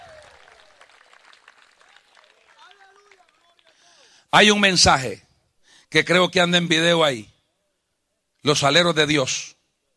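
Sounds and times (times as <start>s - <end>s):
audience applauding: 0.0s - 4.1s
speech: 4.3s - 5.2s, 5.9s - 7.3s, 8.4s - 9.6s.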